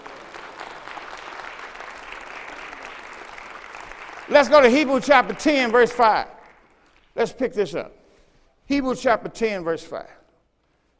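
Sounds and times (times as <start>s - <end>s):
crowd hand clapping: 0.0s - 7.5s
speech: 4.3s - 6.3s, 7.2s - 8.0s, 8.7s - 10.2s.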